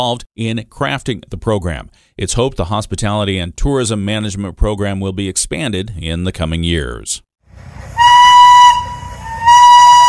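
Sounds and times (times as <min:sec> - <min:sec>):
speech: 0:00.0 - 0:08.0
steam locomotive running: 0:07.5 - 0:10.0
steam locomotive whistle: 0:07.8 - 0:10.0.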